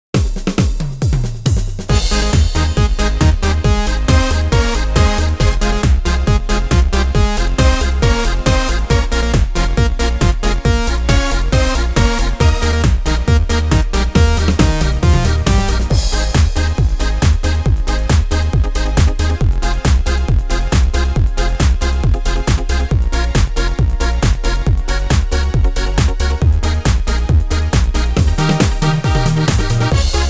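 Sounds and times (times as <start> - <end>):
dance music: 0.2 - 30.2.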